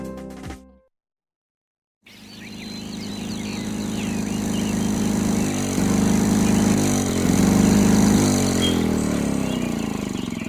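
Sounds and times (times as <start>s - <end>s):
lawnmower engine running: 2.1s - 10.4s.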